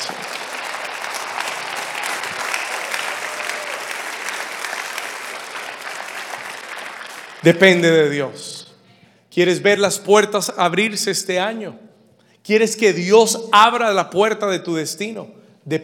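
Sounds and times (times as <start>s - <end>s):
audience applauding loudly: 0.0s - 7.9s
speech: 7.4s - 8.6s, 9.4s - 15.8s.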